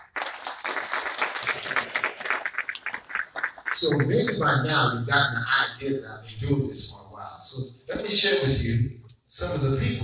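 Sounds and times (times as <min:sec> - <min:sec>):
crowd applauding: 0:00.0 - 0:04.9
speech: 0:03.8 - 0:10.0.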